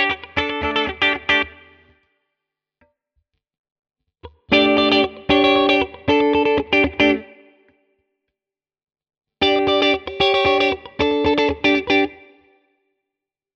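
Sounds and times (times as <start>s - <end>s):
Hagstroem clean electric guitar groove in all positions: 0.0s - 1.9s, 4.2s - 7.7s, 9.4s - 12.3s.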